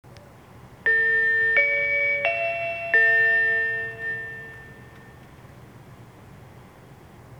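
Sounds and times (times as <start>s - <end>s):
chime: 0.9s - 5.2s.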